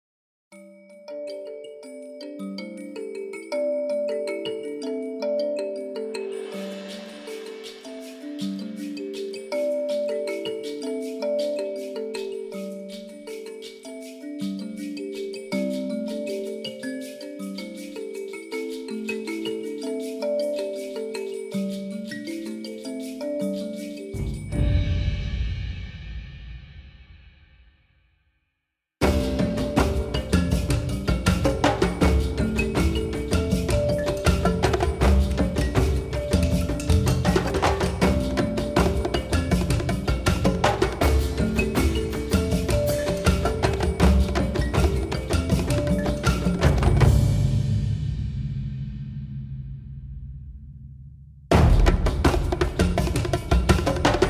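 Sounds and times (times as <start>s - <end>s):
small percussion ensemble: 0.5s - 27.8s, 29.0s - 54.2s.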